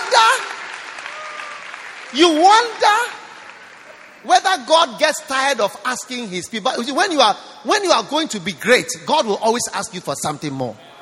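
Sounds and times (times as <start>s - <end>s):
audience clapping: 0.0s - 5.2s
speech: 2.1s - 3.2s, 4.2s - 10.9s.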